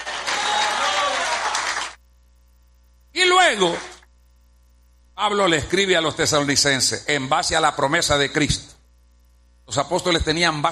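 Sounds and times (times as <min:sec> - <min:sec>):
audience applauding: 0:00.0 - 0:02.0
speech: 0:03.5 - 0:03.9, 0:05.2 - 0:08.7, 0:09.7 - 0:10.6.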